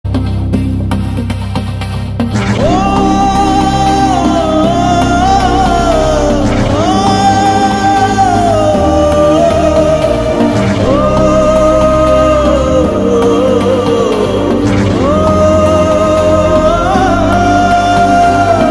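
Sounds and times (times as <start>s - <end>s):
sad background music: 0.1s - 18.6s.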